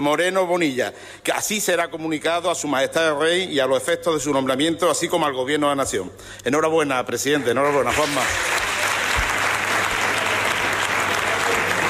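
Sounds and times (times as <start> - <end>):
speech: 0.0 - 8.7
parliament members applauding: 7.6 - 11.8.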